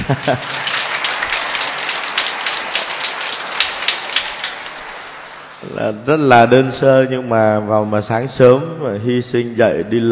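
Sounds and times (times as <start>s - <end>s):
audience applause: 0.0s - 4.6s
speech: 0.1s - 0.7s, 5.7s - 10.1s.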